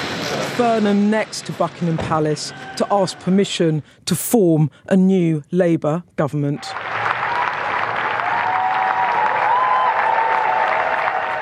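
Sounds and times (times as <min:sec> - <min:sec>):
speech: 0:00.6 - 0:07.1
large crowd applauding and cheering an arrival: 0:02.0 - 0:03.4, 0:06.6 - 0:11.4.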